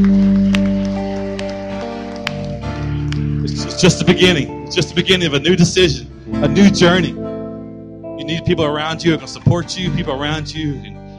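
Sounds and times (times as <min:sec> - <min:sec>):
audience clapping: 0:00.0 - 0:04.4
sustained keyboard-like chords: 0:00.0 - 0:11.1
speech: 0:03.8 - 0:07.2, 0:08.2 - 0:11.0.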